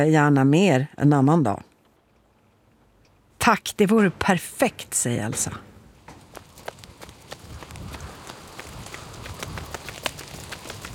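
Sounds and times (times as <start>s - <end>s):
speech: 0.0s - 1.7s, 3.4s - 5.7s
running footsteps: 6.0s - 10.9s.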